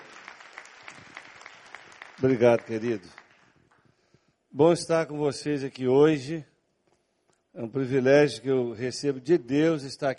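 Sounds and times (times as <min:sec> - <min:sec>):
crowd round of applause: 0:00.0 - 0:03.6
speech: 0:02.2 - 0:03.2, 0:04.6 - 0:06.5, 0:07.6 - 0:10.1.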